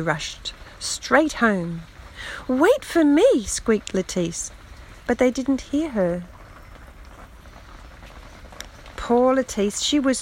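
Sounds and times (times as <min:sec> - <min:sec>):
speech: 0:00.0 - 0:06.3, 0:09.1 - 0:10.2
rain pattering on a roof: 0:00.0 - 0:10.2.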